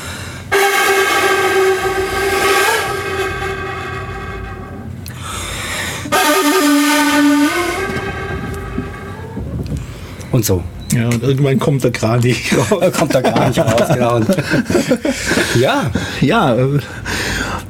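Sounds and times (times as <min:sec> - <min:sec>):
wind instrument imitating wind rustling a bamboo forest: 0:00.0 - 0:10.3
speech: 0:10.4 - 0:17.6
laughter: 0:12.4 - 0:16.0.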